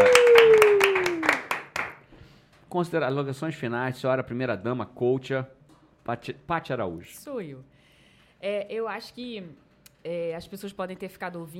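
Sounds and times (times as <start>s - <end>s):
round of applause, clapping: 0.0s - 2.1s
speech: 2.8s - 7.8s, 8.4s - 11.5s.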